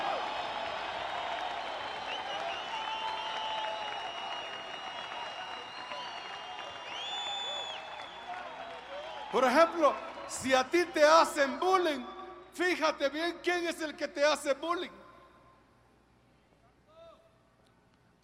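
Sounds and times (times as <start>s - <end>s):
audience applauding and cheering: 0.0s - 11.5s
speech: 9.3s - 15.0s.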